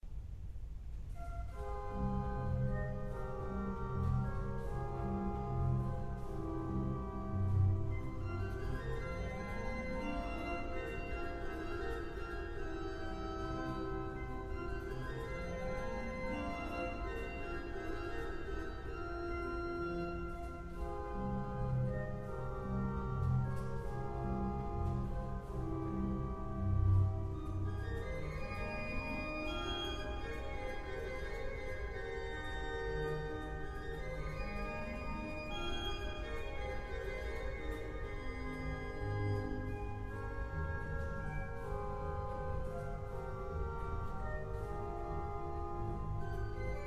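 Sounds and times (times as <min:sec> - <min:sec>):
organ playing: 0:01.2 - 0:46.8.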